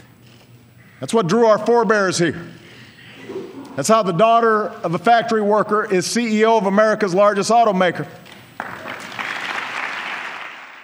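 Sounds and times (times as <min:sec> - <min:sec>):
speech: 0:01.0 - 0:02.6, 0:03.8 - 0:08.2
audience applause: 0:08.6 - 0:10.8.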